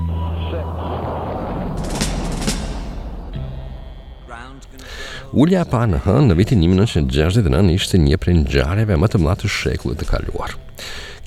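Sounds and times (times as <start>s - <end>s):
Apollo moon rocket engines at ignition and launch: 0.0s - 7.6s
speech: 5.3s - 11.2s.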